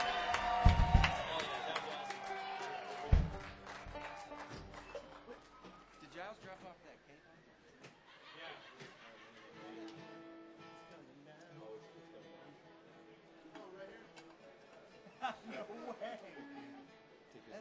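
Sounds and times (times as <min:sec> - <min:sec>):
crowd applauding and cheering: 0:00.0 - 0:06.6
laughter: 0:00.0 - 0:06.8, 0:07.7 - 0:10.7, 0:14.3 - 0:17.5
murmur of chatter: 0:00.0 - 0:17.5
sharp thumps: 0:00.4 - 0:01.4, 0:03.1 - 0:04.8.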